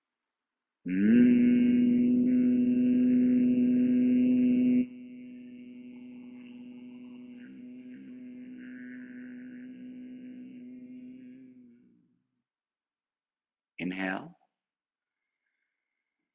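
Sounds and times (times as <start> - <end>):
speech: 0.8 - 1.2
person humming on the exhale: 0.9 - 11.9.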